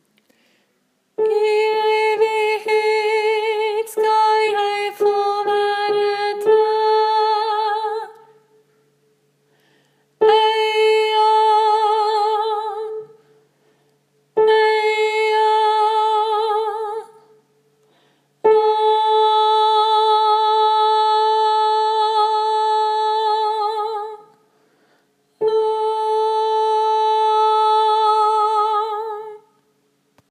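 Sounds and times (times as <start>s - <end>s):
tenor singing: 1.2s - 8.4s, 10.2s - 13.2s, 14.3s - 17.3s, 18.4s - 24.4s, 25.4s - 29.6s.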